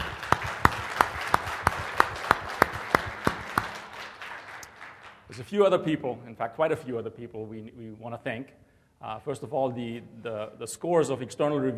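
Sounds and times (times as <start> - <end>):
crowd applause: 0.0 - 5.4
sharp evenly spaced clap: 0.0 - 5.7
speech: 5.4 - 11.7.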